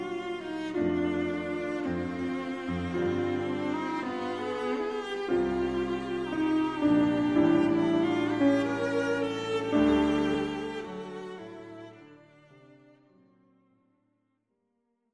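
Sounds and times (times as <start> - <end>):
piano trio music: 0.0 - 12.1.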